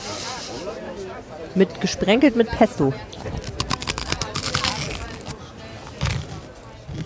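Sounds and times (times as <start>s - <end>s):
speech: 0.7s - 3.5s
chewing: 3.1s - 7.0s
someone biting hard toasted baguette croutons: 3.1s - 7.0s.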